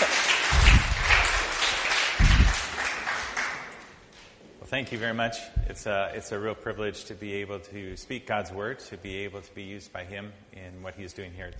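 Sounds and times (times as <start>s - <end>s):
audience applause: 0.0s - 3.9s
speech: 4.7s - 11.5s.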